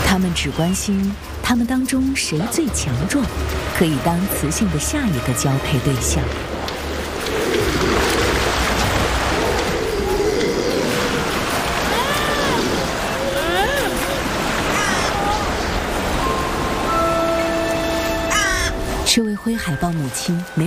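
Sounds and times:
speech: 0.1s - 6.5s, 19.1s - 20.6s
surf and rushing water: 6.0s - 19.1s
crows cawing: 14.6s - 15.9s, 17.9s - 18.9s.

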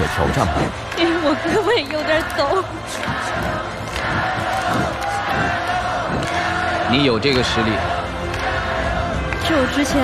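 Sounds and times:
crowd cheering and shouting encouragement in a studio arena: 0.0s - 10.0s
speech: 0.2s - 4.9s, 6.9s - 8.0s, 9.5s - 10.0s.

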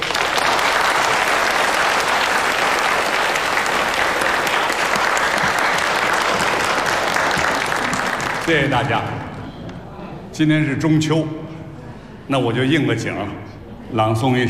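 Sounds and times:
audience applause: 0.0s - 9.6s
speech: 8.5s - 9.2s, 10.4s - 11.5s, 12.3s - 14.4s.

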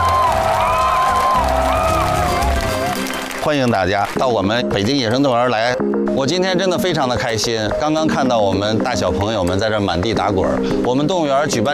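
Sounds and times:
high wavering whoops: 0.0s - 3.1s
crowd applauding and cheering: 0.0s - 4.2s
speech: 3.4s - 11.7s.

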